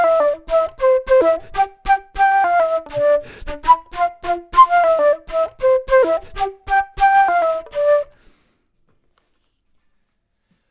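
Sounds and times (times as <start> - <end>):
flute: 0.0 - 8.4.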